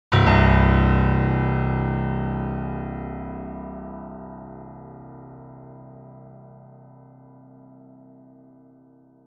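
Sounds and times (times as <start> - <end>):
piano: 0.1 - 9.2.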